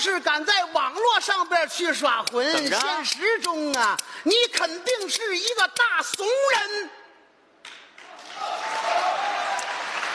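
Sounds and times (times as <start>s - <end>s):
speech: 0.0s - 7.0s
audience applause: 8.0s - 10.1s.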